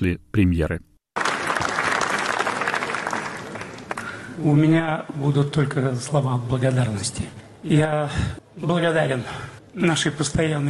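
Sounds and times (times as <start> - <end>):
speech: 0.0 - 0.9, 4.4 - 10.6
standing ovation applause at film premiere: 1.2 - 4.4.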